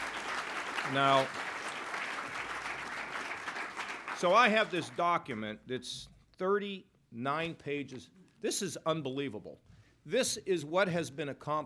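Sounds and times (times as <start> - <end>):
applause: 0.0 - 5.5
speech: 0.9 - 1.5, 4.2 - 11.6.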